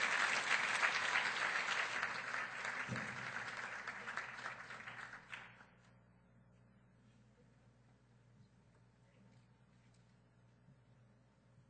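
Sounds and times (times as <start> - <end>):
audience applause: 0.0 - 5.6.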